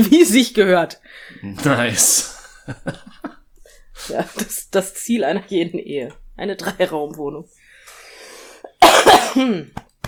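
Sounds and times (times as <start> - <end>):
speech: 0.0 - 3.2, 4.0 - 7.6, 9.3 - 9.9
laughter: 2.0 - 4.4
harsh coughs: 8.8 - 9.8.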